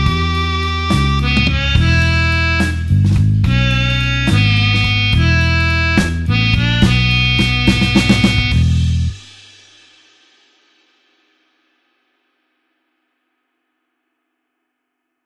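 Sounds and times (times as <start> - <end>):
blues harmonica in E playing slowly: 0.0 - 9.1.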